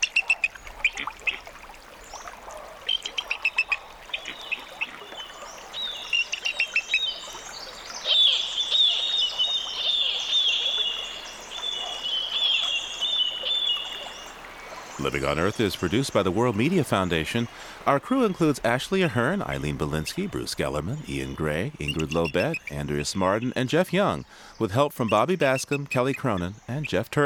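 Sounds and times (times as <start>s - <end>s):
fledgling bald eagle calling: 0.0s - 14.3s, 21.0s - 23.6s, 24.2s - 27.0s
faint trickling water: 0.0s - 27.2s
speech: 15.1s - 27.2s.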